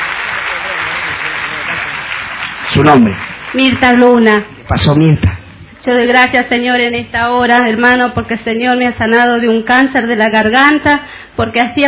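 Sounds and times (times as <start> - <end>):
audience applause: 0.0 - 4.4
speech: 2.8 - 11.8.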